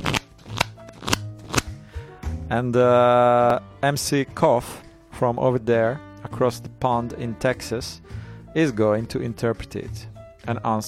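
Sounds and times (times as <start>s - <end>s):
deck of tarot cards shuffled in the hand: 0.0s - 1.8s
speech: 2.5s - 10.8s.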